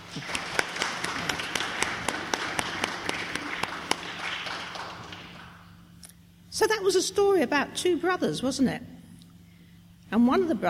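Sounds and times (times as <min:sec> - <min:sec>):
children clapping: 0:00.0 - 0:05.7
speech: 0:00.2 - 0:00.4, 0:06.6 - 0:08.9, 0:10.1 - 0:10.6.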